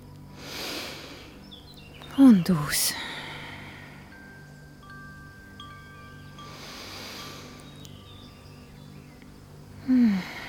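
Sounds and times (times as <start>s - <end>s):
person snuffling, breathing in deeply: 0.4s - 1.4s, 2.9s - 4.3s, 6.4s - 7.8s, 9.8s - 10.4s
speech: 2.2s - 3.1s.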